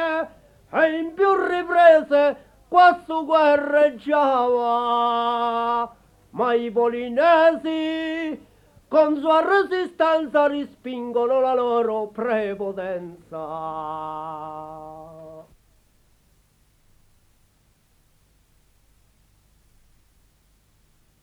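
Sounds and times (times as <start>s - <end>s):
ottava rima singing in Polino, Umbria: 0.0s - 15.6s.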